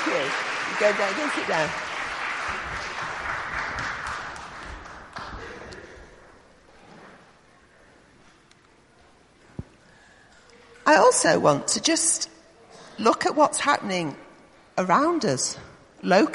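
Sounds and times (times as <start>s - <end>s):
audience clapping: 0.0s - 6.0s
speech: 0.1s - 2.7s, 10.9s - 12.3s, 13.0s - 14.2s, 14.8s - 16.3s.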